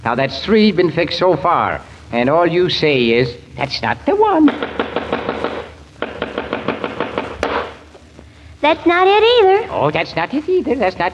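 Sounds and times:
speech: 0.0s - 5.2s, 8.6s - 11.1s
hammer pounding nails into moldings: 4.5s - 7.8s.

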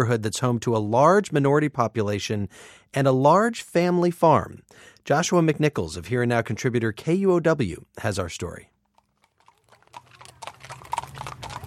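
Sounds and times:
speech: 0.0s - 8.7s
horse hooves clip-clopping on Henderson Street in Seattle: 9.0s - 11.6s.

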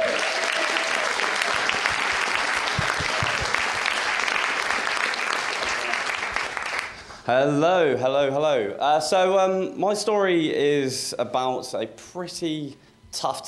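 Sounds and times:
audience applause: 0.0s - 7.2s
speech: 7.3s - 13.4s.

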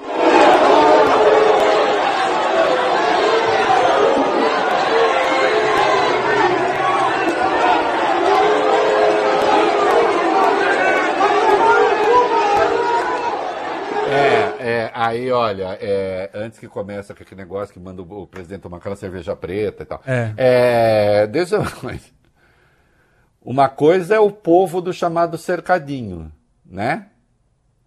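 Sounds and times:
stadium crowd booing: 0.0s - 14.7s
laughter: 0.4s - 14.6s
speech: 15.1s - 22.2s, 23.4s - 27.1s.

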